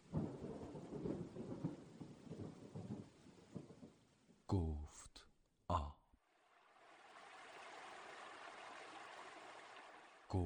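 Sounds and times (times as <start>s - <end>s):
low rolling thunder: 0.0s - 4.0s
rainfall: 0.0s - 4.5s, 6.3s - 10.4s
speech: 4.6s - 6.0s.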